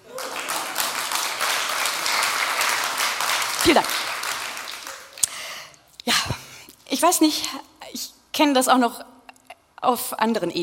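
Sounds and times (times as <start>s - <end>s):
audience applause: 0.0s - 5.2s
speech: 3.6s - 4.1s, 7.0s - 9.1s, 9.8s - 10.6s.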